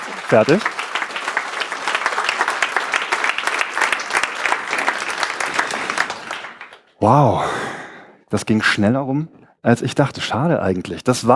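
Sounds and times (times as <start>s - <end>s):
audience applause: 0.0s - 7.4s
speech: 0.3s - 0.8s, 7.0s - 7.7s, 8.3s - 11.3s.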